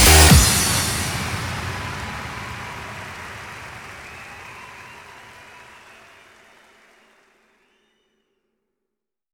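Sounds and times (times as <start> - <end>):
dance music: 0.0 - 4.1.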